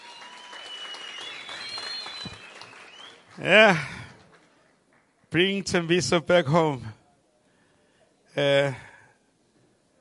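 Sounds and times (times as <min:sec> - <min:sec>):
audience applause after a performance: 0:00.0 - 0:04.6
speech: 0:03.4 - 0:03.9, 0:05.3 - 0:07.0, 0:08.4 - 0:08.9.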